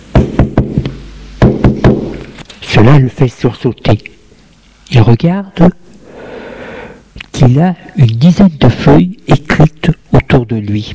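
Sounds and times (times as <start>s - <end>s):
knocking on an office door: 0.1s - 0.8s, 1.4s - 2.1s
speech: 2.8s - 4.1s, 4.9s - 5.8s, 7.4s - 10.9s.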